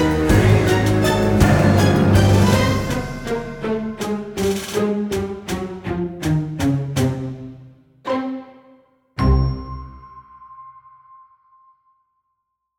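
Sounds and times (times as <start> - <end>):
scary spooky Halloween background music: 0.0 - 10.1.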